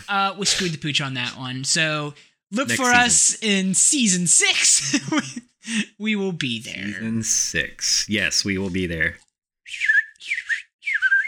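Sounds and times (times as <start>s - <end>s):
speech: 0.0s - 10.0s
whistled segment intro jingle: 9.7s - 11.2s.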